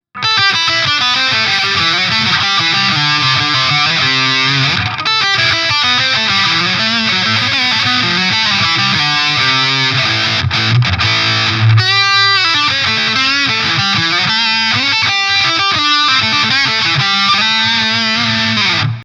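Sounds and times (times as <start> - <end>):
guitar through Electro-Harmonix Nano Metal Muff distortion: 0.1 - 19.0.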